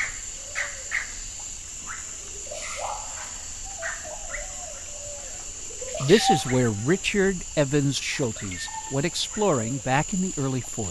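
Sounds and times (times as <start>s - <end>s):
Amazon rainforest birds: 0.0s - 10.8s
speech: 6.1s - 10.8s.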